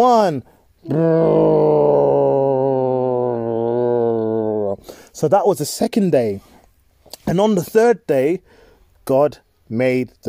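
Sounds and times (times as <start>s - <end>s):
speech: 0.0s - 2.4s, 4.8s - 6.6s, 7.3s - 10.2s
voice imitating an airplane: 0.8s - 4.8s.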